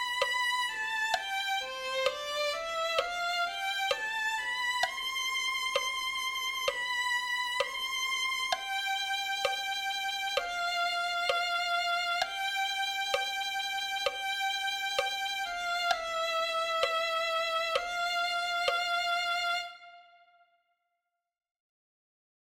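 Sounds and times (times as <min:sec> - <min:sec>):
violin: 0:00.0 - 0:20.6.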